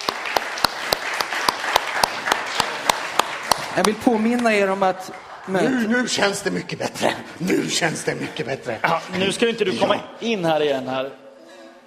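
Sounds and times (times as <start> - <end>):
audience applause: 0.0 - 5.7
speech: 3.8 - 11.2.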